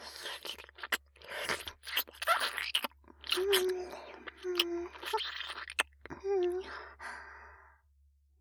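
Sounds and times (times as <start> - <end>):
ear licking sounds: 0.1 - 6.5.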